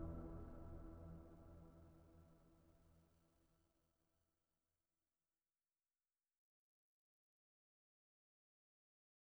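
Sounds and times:
overlay drone: 0.0 - 1.8.

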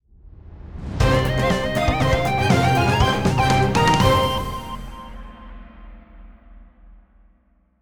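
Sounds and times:
short victory music: 1.0 - 5.6.

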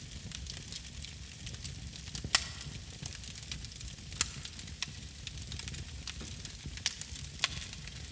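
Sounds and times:
fireplace fire: 0.0 - 8.1.

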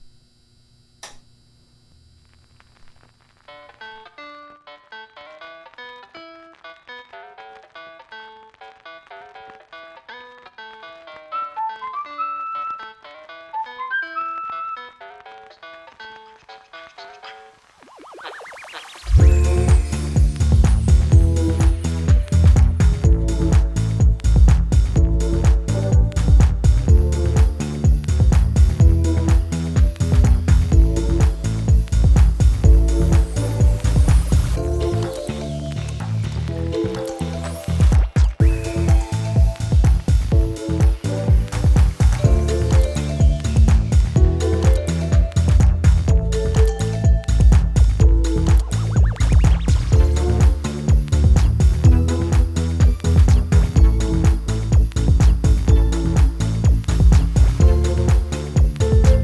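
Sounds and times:
lo-fi house mix: 8.5 - 59.2.

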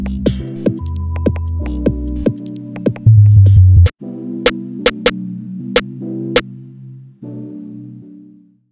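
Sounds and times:
instrumental music: 0.0 - 5.2.

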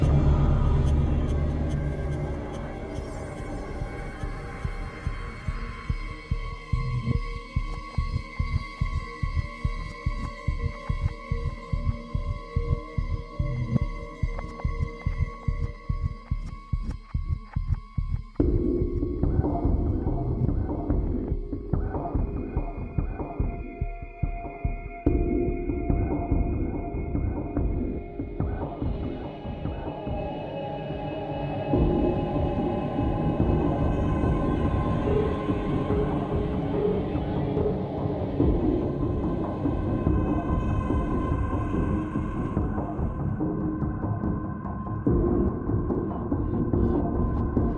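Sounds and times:
exploration ambient drone: 0.0 - 47.7.

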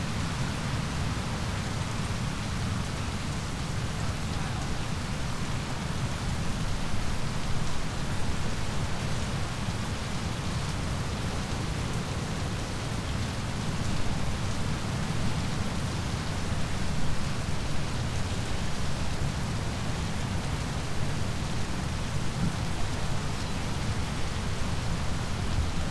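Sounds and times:
heavy outdoor rain: 0.0 - 25.8.

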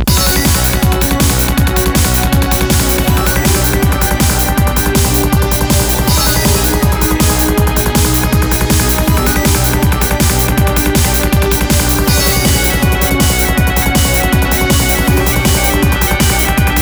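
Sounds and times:
tension music: 0.1 - 16.7.

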